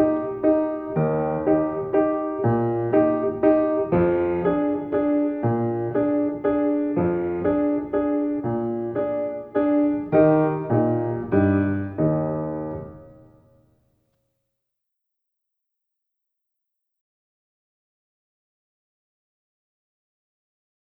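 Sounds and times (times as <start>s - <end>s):
waltz accompaniment: 0.0s - 13.3s.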